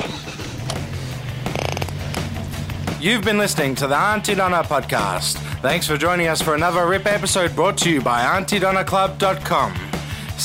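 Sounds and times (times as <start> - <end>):
car engine starting: 0.0 - 3.0
speech: 3.0 - 10.4.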